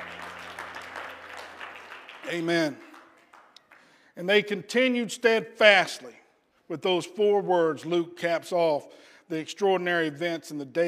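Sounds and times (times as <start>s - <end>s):
audience hand clapping: 0.0s - 4.1s
speech: 2.3s - 2.9s, 4.2s - 10.8s.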